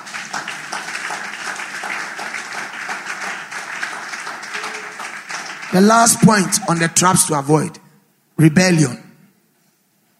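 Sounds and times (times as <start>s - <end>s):
audience applause: 0.0s - 7.3s
speech: 5.7s - 7.8s, 8.4s - 9.0s.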